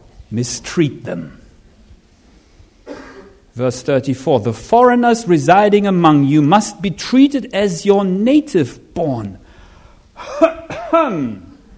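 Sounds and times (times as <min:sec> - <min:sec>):
speech: 0:00.3 - 0:01.4, 0:03.6 - 0:09.4, 0:10.2 - 0:11.5
preacher coughing while reading scripture in a sermon: 0:02.8 - 0:03.4, 0:10.2 - 0:11.6.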